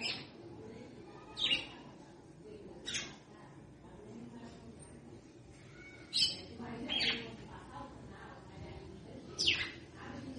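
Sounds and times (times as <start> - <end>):
female red-cowled cardinal chirping: 0.0 - 0.3, 1.3 - 1.8, 5.8 - 7.4, 9.3 - 9.8.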